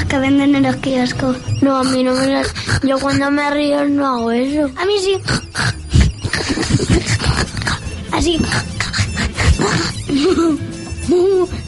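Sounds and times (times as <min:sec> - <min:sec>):
speech: 0:00.1 - 0:05.8, 0:08.2 - 0:08.8, 0:10.2 - 0:11.5
person imitating pig oinking: 0:01.6 - 0:03.7, 0:04.8 - 0:11.6
people talking and laughing: 0:05.8 - 0:11.6.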